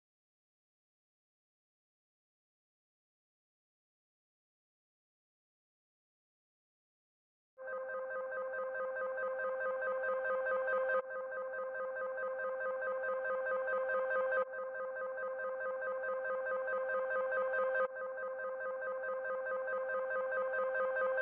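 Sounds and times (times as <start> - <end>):
140 BPM C minor trap melody arpeggio loop: 7.9 - 21.2.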